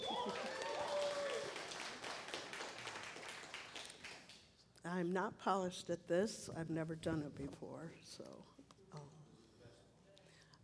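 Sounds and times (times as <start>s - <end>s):
audience applauding to welcome a speaker: 0.0s - 4.4s
speech: 5.0s - 9.1s.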